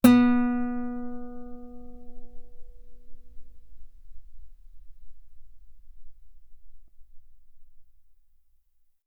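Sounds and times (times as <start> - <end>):
loud guitar note on the B string: 0.0 - 5.0.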